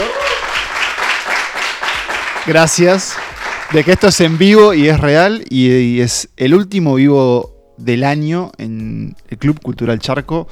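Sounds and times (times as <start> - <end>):
faint cheers: 0.0 - 0.7
audience applause: 0.0 - 4.6
speech: 2.4 - 10.5.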